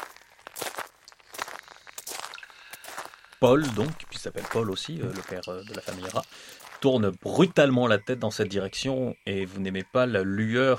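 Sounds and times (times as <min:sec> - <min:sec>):
footsteps of companions approaching: 0:00.0 - 0:06.9
speech: 0:03.4 - 0:10.7.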